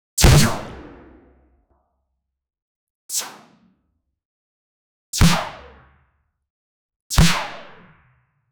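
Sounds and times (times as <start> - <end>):
magical darts: 0.2 - 1.3.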